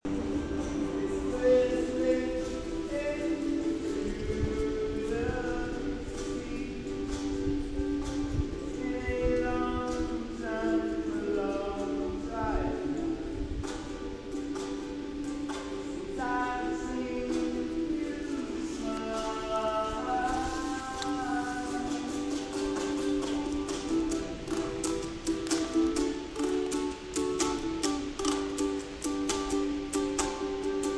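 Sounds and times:
person singing: 0.1s - 30.9s.

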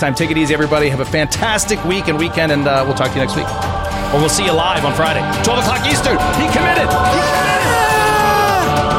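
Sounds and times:
speech: 0.0s - 7.5s
person screaming: 7.1s - 8.8s.

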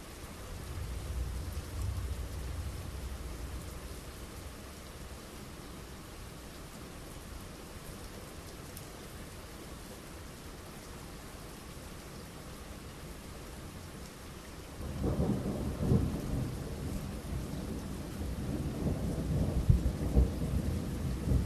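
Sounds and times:
thunderstorm in the early hours: 0.5s - 4.6s, 14.8s - 21.4s.

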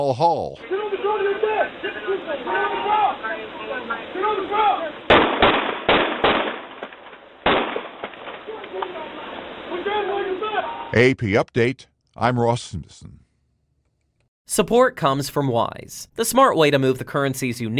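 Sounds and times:
speech: 0.0s - 5.7s, 8.5s - 13.2s, 14.5s - 17.7s
radio-like background: 0.6s - 5.1s, 8.4s - 11.8s
police gunfire recorded by dash cams in Miami Gardens: 5.1s - 9.5s.

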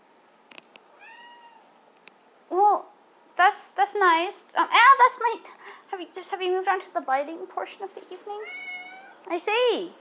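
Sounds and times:
female domestic house cat meowing: 1.0s - 1.7s, 8.4s - 9.2s
speech: 2.8s - 8.6s, 9.2s - 9.9s.

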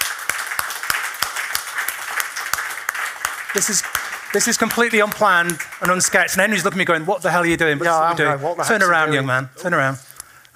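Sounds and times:
audience applause: 0.0s - 7.0s
speech: 3.6s - 10.0s.

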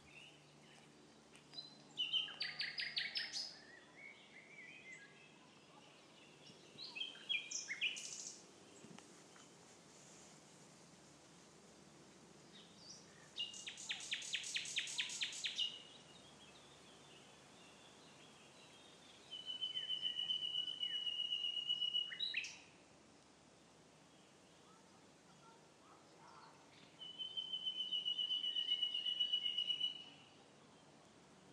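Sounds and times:
nightingale singing in Abbots Wood East Sussex: 1.5s - 8.4s, 12.5s - 22.7s, 26.7s - 30.3s.

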